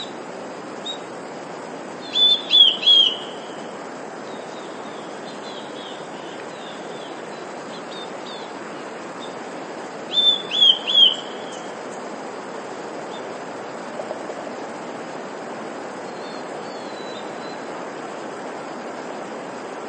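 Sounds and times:
Eurasian blue tit singing: 0:02.0 - 0:09.4, 0:10.1 - 0:12.0.

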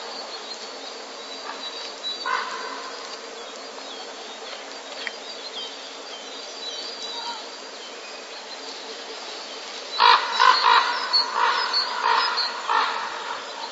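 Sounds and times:
common raven courtship calls: 0:01.5 - 0:03.1, 0:10.0 - 0:13.7.

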